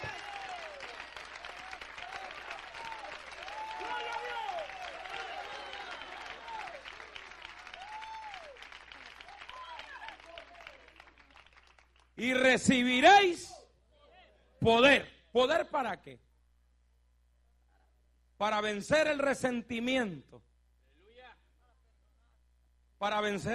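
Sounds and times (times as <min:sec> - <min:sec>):
applause: 0:00.0 - 0:12.7
speech: 0:12.2 - 0:13.5, 0:14.6 - 0:16.3, 0:18.4 - 0:20.5, 0:23.0 - 0:23.5.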